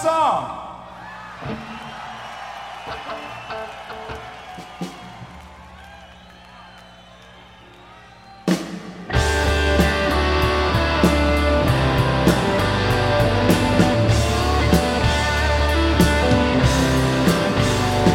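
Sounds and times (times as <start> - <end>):
live concert crowd cheering: 0.7 - 18.1.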